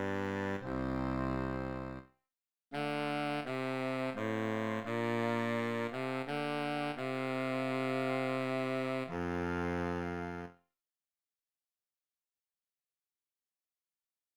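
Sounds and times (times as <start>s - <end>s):
tuba in E flat: 0.0s - 2.0s, 2.8s - 10.5s.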